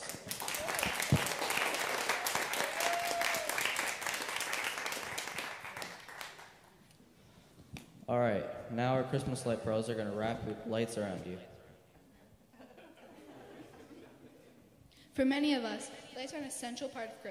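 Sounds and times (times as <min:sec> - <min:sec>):
crowd applauding: 0:00.0 - 0:06.8
speech: 0:08.1 - 0:11.5, 0:15.2 - 0:17.2
laughter: 0:12.5 - 0:14.8.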